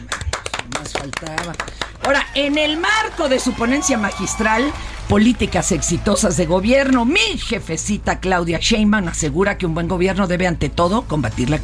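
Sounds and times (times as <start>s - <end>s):
applause: 0.0s - 6.0s
speech: 1.0s - 11.6s.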